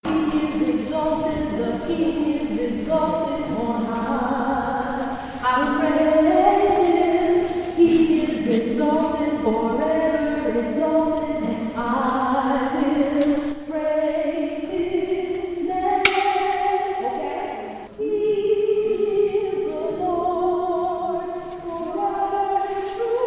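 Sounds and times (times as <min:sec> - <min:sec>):
soprano singing: 0:00.0 - 0:23.2.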